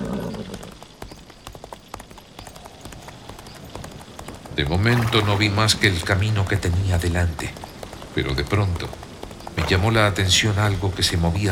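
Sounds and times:
horse hooves galloping: 0.0s - 11.4s
speech: 4.6s - 9.0s, 9.7s - 11.4s.

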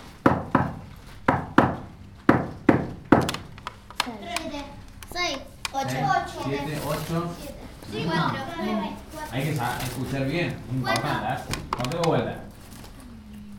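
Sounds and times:
knocking on a door: 0.2s - 3.4s
speech: 6.4s - 12.5s.

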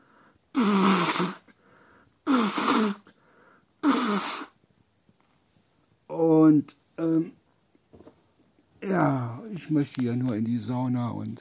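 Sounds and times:
forceful nose blowing: 0.5s - 1.6s, 2.2s - 3.2s, 3.8s - 4.6s
speech: 6.6s - 7.4s, 9.7s - 11.4s.

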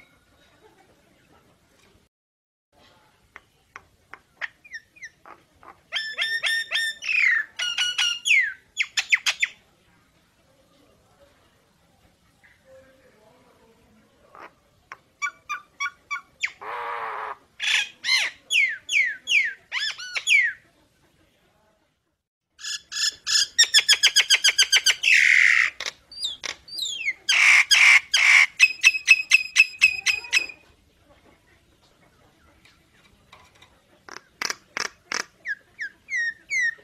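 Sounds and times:
Nias hill myna whistles and rasps: 5.9s - 9.6s, 15.2s - 20.6s, 22.6s - 30.7s, 34.1s - 36.8s.

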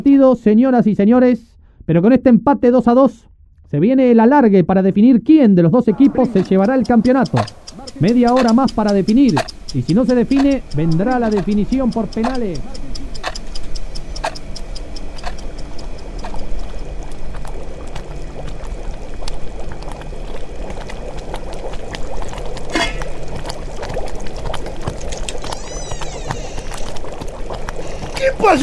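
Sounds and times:
speech: 0.0s - 12.9s
liquid hissing and bubbling in a cooking pot: 5.9s - 28.6s.

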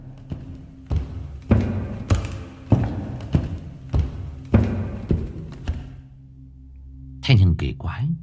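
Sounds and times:
footsteps descending a staircase: 0.0s - 6.1s
speech: 7.8s - 8.2s.

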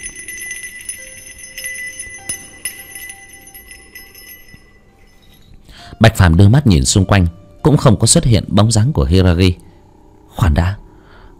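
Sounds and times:
ritual bells jingling: 0.0s - 5.8s
speech: 6.0s - 9.7s, 10.4s - 10.8s.

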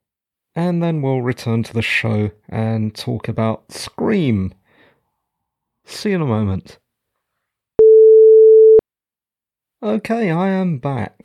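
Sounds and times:
speech: 0.6s - 4.6s, 5.9s - 6.8s, 9.8s - 11.2s
electronic break tone: 7.8s - 8.8s.

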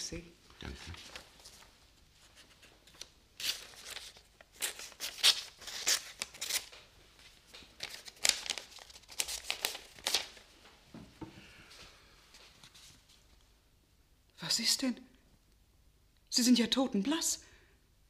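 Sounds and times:
speech: 0.1s - 1.2s, 14.6s - 15.1s, 16.4s - 17.5s
paper letter crinkling and rustling: 0.7s - 10.5s.

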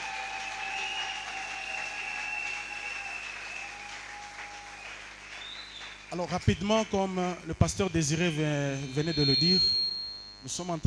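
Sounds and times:
church congregation clapping to acclaim the Lord: 0.0s - 7.5s
speech: 6.1s - 9.8s, 10.4s - 10.8s
sustained high-pitched tone: 7.5s - 10.8s.

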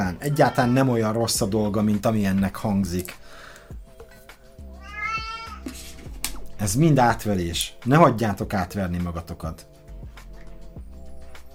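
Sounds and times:
cat meowing: 0.0s - 1.0s, 4.8s - 5.7s
speech: 0.1s - 3.4s, 6.6s - 9.7s.

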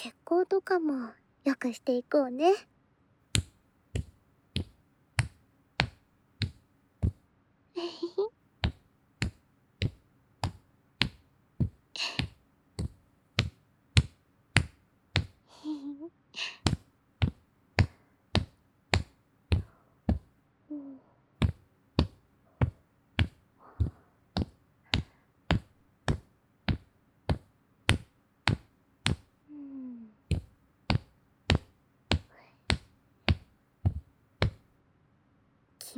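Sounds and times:
speech: 0.0s - 2.7s
rhythmic tapping on neck and shoulders: 3.4s - 7.2s, 8.6s - 15.4s, 16.6s - 20.3s, 21.4s - 29.3s, 30.3s - 34.7s
soft breathy sighs or murmurs: 15.4s - 16.8s, 20.7s - 21.2s, 29.4s - 30.2s.

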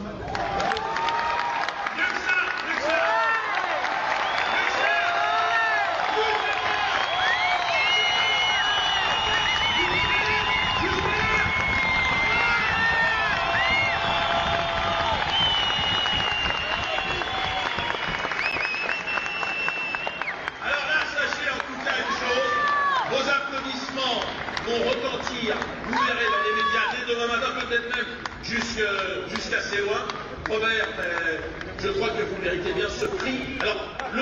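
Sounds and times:
audience applauding and cheering at an award ceremony: 0.0s - 34.1s.

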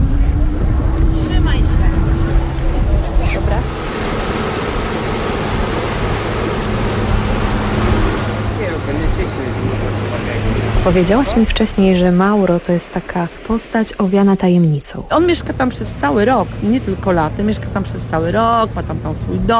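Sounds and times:
wind noise: 0.0s - 12.1s
motorboat engine droning on the way to Budelli in La Maddalena archipelago: 0.0s - 19.5s
rushing water: 0.0s - 19.5s
speech: 10.9s - 19.5s.

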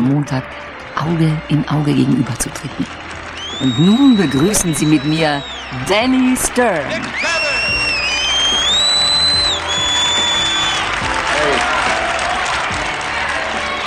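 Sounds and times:
speech: 0.2s - 7.3s
boxing crowd cheering and applauding at Madison Square Garden: 0.5s - 13.8s
shrill whistles: 3.3s - 11.0s.

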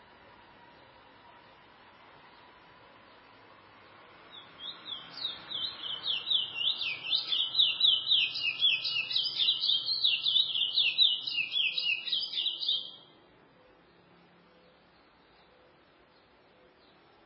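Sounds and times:
faint low hum: 0.0s - 5.9s, 13.0s - 17.2s
chestnut-bellied seed finch singing: 4.3s - 13.1s.

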